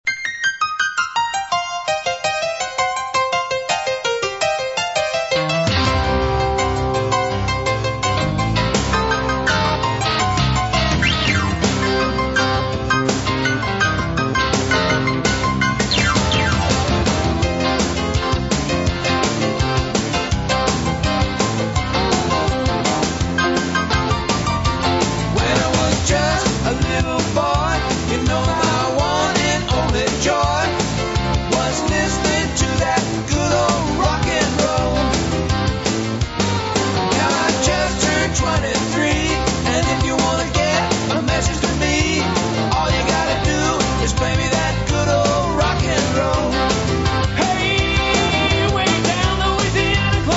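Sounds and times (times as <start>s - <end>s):
rock and roll music: 0.1s - 50.3s.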